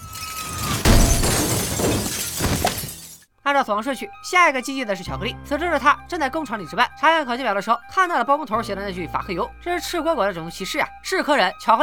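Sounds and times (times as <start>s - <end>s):
crackling tinkling glass debris: 0.0s - 3.2s
tempered glass shattering: 0.0s - 3.3s
speech: 3.5s - 11.8s.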